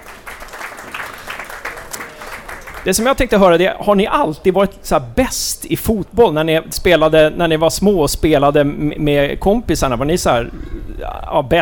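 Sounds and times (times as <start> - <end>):
audience applause: 0.0 - 3.5
speech: 2.8 - 11.6.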